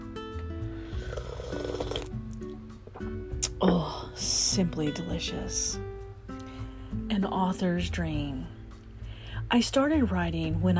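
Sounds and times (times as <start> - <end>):
person sipping coffee: 0.8 - 3.7
speech: 3.5 - 5.9, 7.2 - 8.6, 9.5 - 10.7.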